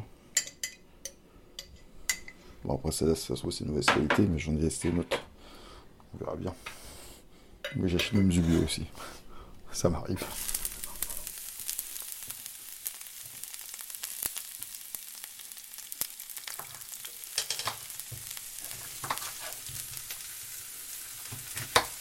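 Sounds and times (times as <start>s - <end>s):
speech: 2.6s - 5.2s, 6.2s - 6.8s, 7.7s - 10.5s
onion frying in a pan: 9.7s - 21.9s
stirring scrapes: 18.6s - 19.9s.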